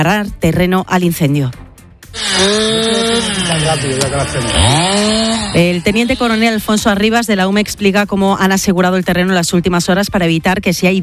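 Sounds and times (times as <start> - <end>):
speech: 0.0 - 1.6, 2.4 - 11.0
chainsaw cutting wood: 2.1 - 7.0.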